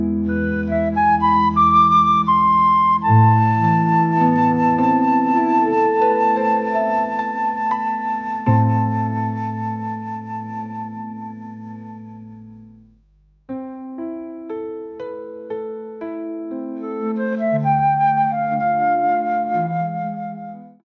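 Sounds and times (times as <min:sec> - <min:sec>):
flute: 0:00.2 - 0:12.6, 0:16.8 - 0:20.8.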